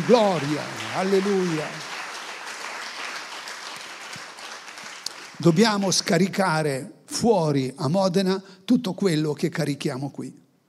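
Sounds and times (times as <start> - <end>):
speech: 0.0 - 1.9, 5.4 - 10.4
applause: 0.0 - 6.1.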